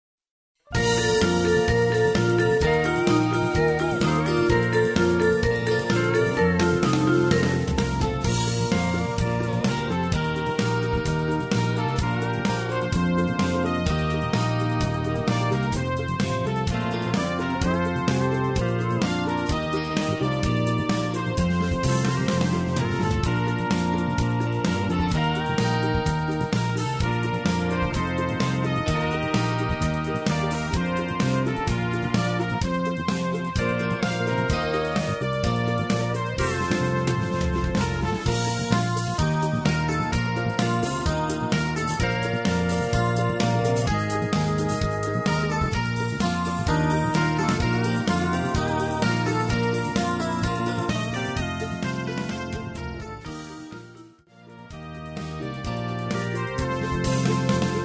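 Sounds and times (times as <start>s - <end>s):
hoedown square dance music: 0.7s - 57.8s.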